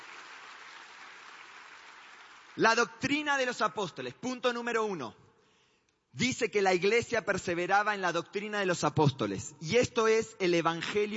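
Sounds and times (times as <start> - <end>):
audience applause: 0.0 - 2.6
speech: 2.6 - 5.2, 6.1 - 11.1.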